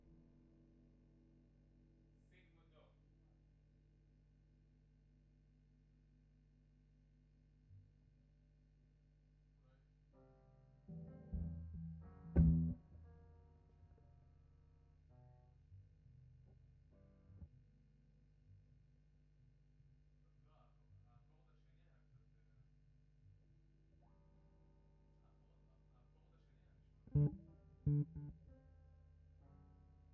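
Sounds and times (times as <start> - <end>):
guitar: 10.9 - 13.2, 27.1 - 28.8.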